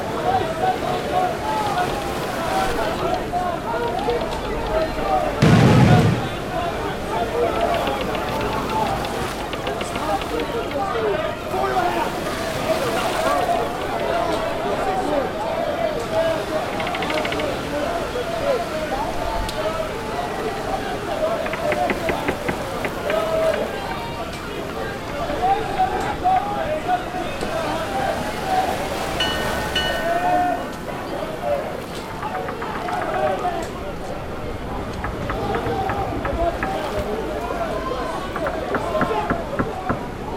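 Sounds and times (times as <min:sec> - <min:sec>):
sea in a pirate ambience: 0:00.0 - 0:40.3
gunshots in a pirate ambience: 0:05.4 - 0:07.3.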